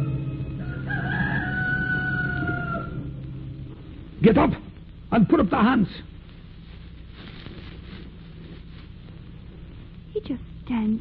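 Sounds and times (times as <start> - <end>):
rooster crowing: 0.0 - 3.2
low rumbling noise: 0.0 - 10.9
speech: 4.2 - 6.1, 10.2 - 10.9.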